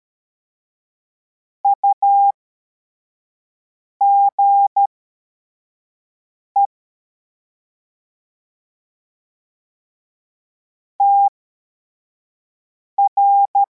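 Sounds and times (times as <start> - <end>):
CW morse code beeps: 1.7 - 2.3, 4.0 - 4.8, 13.0 - 13.7.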